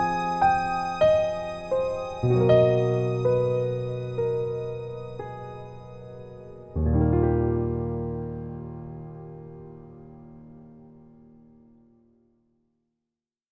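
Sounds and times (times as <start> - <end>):
strings: 0.0 - 10.0
piano: 0.0 - 12.6.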